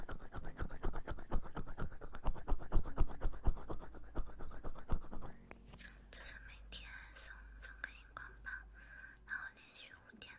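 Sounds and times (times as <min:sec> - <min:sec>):
oily massage strokes and squishing: 0:00.0 - 0:05.3
faint low hum: 0:00.0 - 0:10.3.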